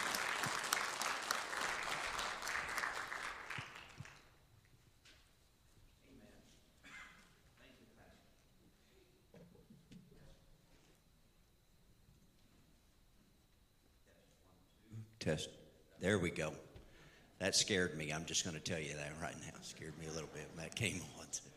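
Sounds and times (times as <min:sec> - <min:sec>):
Assembly of God church congregation applauding a guest speaker: 0:00.0 - 0:04.4
speech: 0:15.2 - 0:16.7, 0:17.4 - 0:21.5.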